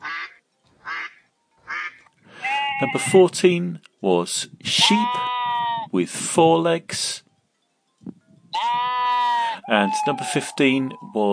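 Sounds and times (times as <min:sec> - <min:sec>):
group of ducks quacking: 0:00.0 - 0:03.2, 0:08.6 - 0:11.3
speech: 0:02.8 - 0:05.3, 0:05.9 - 0:07.2, 0:09.7 - 0:11.3.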